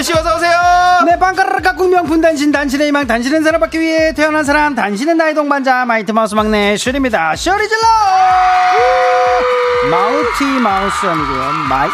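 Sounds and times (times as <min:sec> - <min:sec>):
speech: 0:00.0 - 0:11.9
crowd cheering and shouting: 0:07.8 - 0:11.9.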